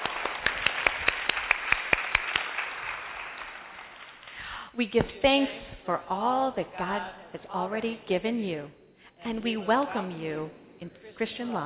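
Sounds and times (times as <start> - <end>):
audience applause: 0.0 - 4.2
speech: 4.8 - 11.6.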